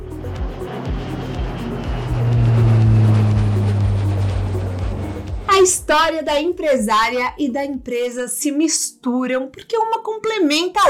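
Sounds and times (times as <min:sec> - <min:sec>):
private jet taking off: 0:00.0 - 0:06.4
speech: 0:05.7 - 0:10.8.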